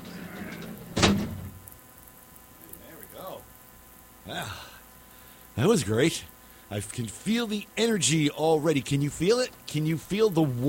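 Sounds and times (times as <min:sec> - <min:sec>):
big heavy door shutting with a thud: 0:00.5 - 0:01.6
speech: 0:04.3 - 0:04.7, 0:05.6 - 0:10.6.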